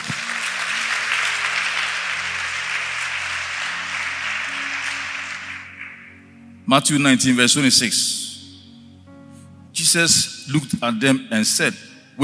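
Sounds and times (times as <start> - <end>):
audience clapping: 0.0 - 6.2
low sustained musical tones: 0.0 - 12.2
speech: 6.7 - 8.2, 9.9 - 12.2.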